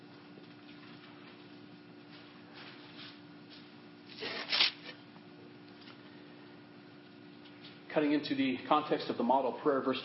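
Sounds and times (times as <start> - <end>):
faint steady hum: 0.0 - 10.0
Bible pages being rifled through quickly: 4.1 - 5.0
speech: 8.0 - 10.0.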